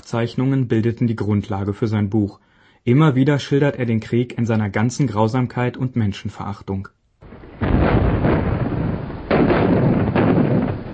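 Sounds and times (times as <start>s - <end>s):
speech: 0.1s - 7.0s
heavy artillery shells exploding: 7.2s - 10.9s.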